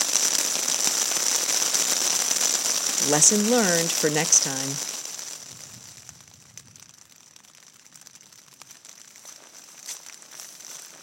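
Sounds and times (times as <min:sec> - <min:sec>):
heavy rain downpour: 0:00.0 - 0:07.6
speech: 0:03.0 - 0:04.9.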